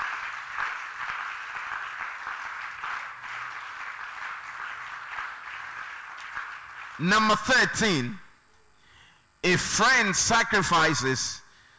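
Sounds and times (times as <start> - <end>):
crowd applauding: 0.0 - 7.3
speech: 7.0 - 8.2, 9.5 - 11.4.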